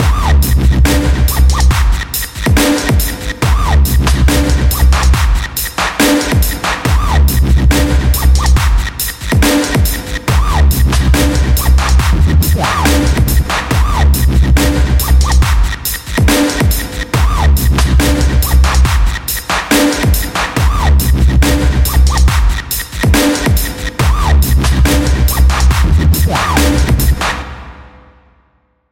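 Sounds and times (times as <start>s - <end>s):
dubstep track: 0.0s - 28.0s.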